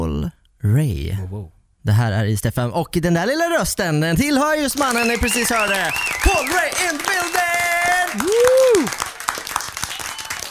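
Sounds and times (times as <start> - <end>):
speech: 0.6 - 9.1
group applause: 4.5 - 10.5.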